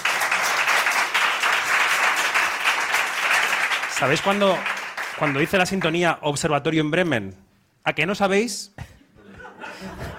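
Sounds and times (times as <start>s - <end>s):
audience applause: 0.0s - 6.0s
speech: 4.0s - 8.9s
laughter: 9.0s - 10.1s.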